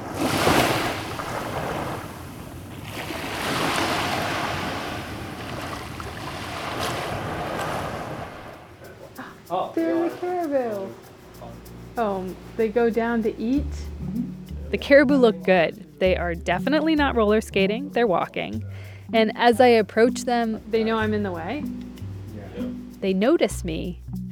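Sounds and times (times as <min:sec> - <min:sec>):
virtual waves washing onto a foamy lake shoreline in a video game: 0:00.0 - 0:11.2
speech: 0:12.0 - 0:21.8, 0:22.6 - 0:24.2.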